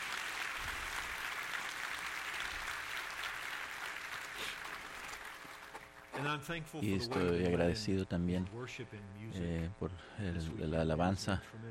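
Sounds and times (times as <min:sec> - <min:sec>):
sustained audience applause: 0:00.0 - 0:06.5
speech: 0:06.2 - 0:11.6.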